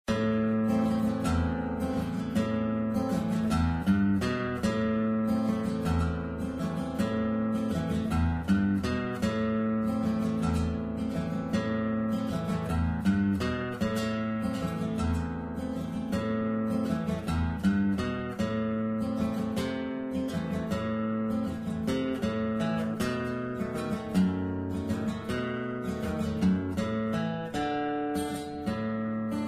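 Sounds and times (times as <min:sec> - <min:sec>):
music: 0:00.0 - 0:29.4.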